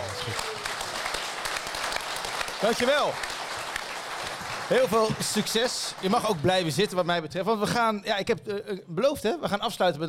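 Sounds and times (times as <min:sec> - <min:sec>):
crowd applauding: 0:00.0 - 0:07.3
speech: 0:02.6 - 0:03.3, 0:04.7 - 0:10.0.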